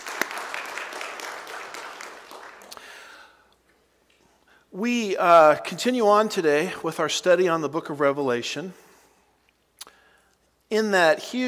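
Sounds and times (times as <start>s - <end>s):
crowd applause: 0.0s - 3.2s
speech: 4.7s - 8.8s, 10.8s - 11.4s.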